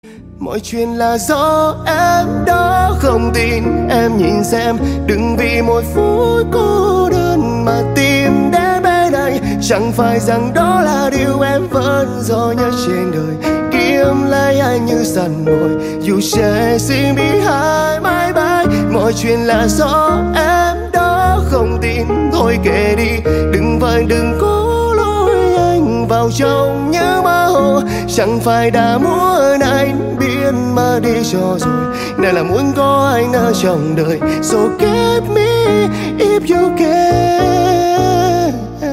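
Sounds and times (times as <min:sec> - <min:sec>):
piano music: 0:00.0 - 0:38.9.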